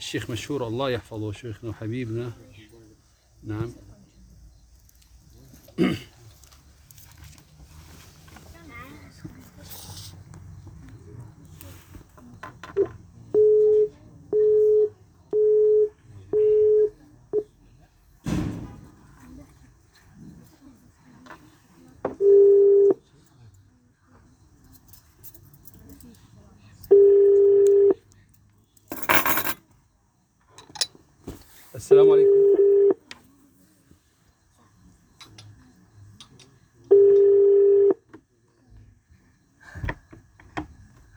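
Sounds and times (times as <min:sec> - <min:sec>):
speech: 0:00.0 - 0:02.7, 0:03.4 - 0:03.9
telephone dialing beeps while placing a call: 0:12.7 - 0:17.5, 0:22.2 - 0:23.0, 0:26.9 - 0:28.0, 0:32.1 - 0:33.0, 0:36.9 - 0:38.0.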